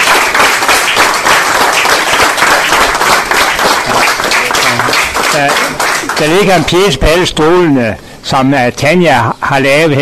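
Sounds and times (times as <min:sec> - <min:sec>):
audience applause at a gathering of a Danish civic network: 0:00.0 - 0:06.9
speech: 0:06.2 - 0:09.9.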